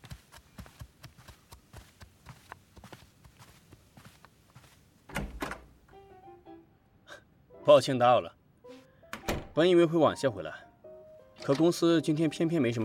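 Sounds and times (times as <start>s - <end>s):
footsteps: 0.0s - 5.1s
door unlatching and opening: 5.1s - 5.8s, 9.1s - 9.6s, 11.4s - 11.8s
speech: 7.7s - 8.4s, 9.6s - 10.6s, 11.4s - 12.8s.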